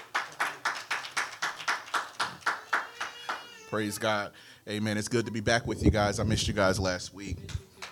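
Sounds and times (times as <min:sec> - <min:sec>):
audience clapping hands: 0:00.0 - 0:03.7, 0:07.5 - 0:07.9
speech: 0:03.7 - 0:07.6.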